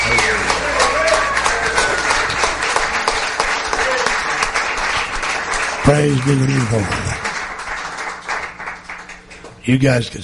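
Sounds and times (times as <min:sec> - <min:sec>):
voices cheering and shouting: 0:00.0 - 0:02.4
crowd clapping: 0:00.0 - 0:09.9
speech: 0:05.9 - 0:07.1, 0:09.6 - 0:10.2.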